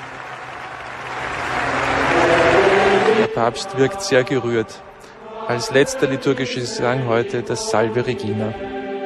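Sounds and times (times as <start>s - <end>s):
huge crowd applause: 0.0s - 3.5s
speech: 3.4s - 4.9s, 5.5s - 8.8s.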